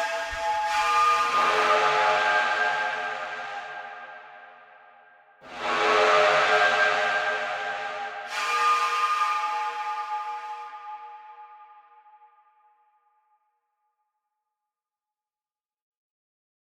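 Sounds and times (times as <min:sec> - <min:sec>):
handlebar blow pipes: 0:00.0 - 0:04.5, 0:05.4 - 0:12.0.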